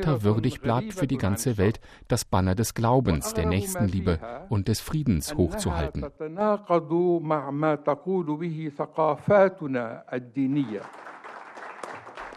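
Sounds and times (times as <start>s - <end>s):
speech: 0.0s - 11.1s
audience applause after a speech: 10.6s - 12.3s.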